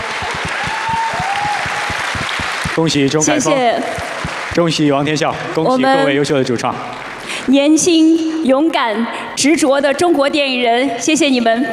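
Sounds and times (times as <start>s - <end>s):
audience at a film awards ceremony applauding best-film winners: 0.0s - 5.6s, 6.9s - 7.5s
speech: 2.8s - 11.7s.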